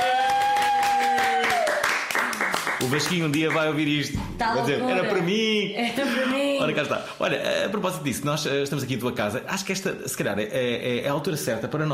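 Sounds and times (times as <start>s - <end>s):
round of applause: 0.0s - 3.9s
speech: 2.8s - 11.9s.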